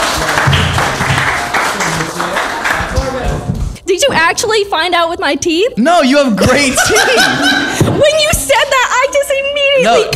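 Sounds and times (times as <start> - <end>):
audience clapping: 0.0 - 3.6
speech: 4.0 - 10.1
laughter: 6.1 - 8.5.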